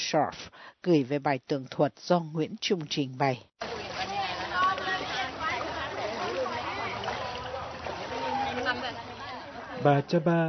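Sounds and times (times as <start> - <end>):
speech: 0.1 - 3.7, 9.8 - 10.4
floodwater sloshing around a metal rowboat in Ayutthaya: 3.6 - 10.1.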